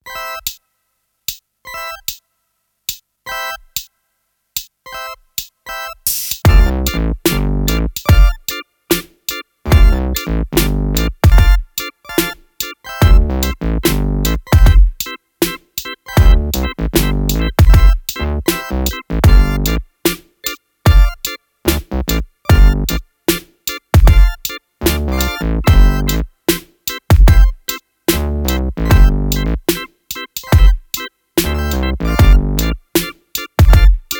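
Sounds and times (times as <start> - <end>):
drum groove: 5.4 - 34.1.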